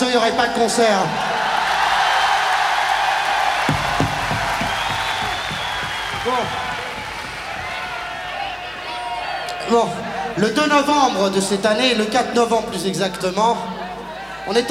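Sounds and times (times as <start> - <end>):
speech: 0.2 - 1.3, 6.2 - 6.6, 9.7 - 13.7, 14.4 - 14.6
concert audience applause: 1.1 - 9.7.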